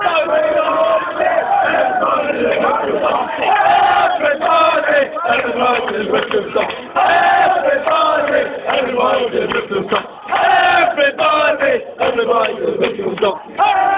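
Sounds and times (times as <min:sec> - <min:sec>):
football crowd songs and soccer chants: 0:00.0 - 0:13.9.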